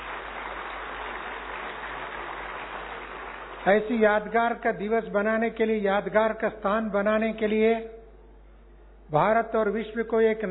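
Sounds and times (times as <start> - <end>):
audience clapping loudly: 0.0 - 4.0
speech: 3.6 - 8.0, 9.1 - 10.5.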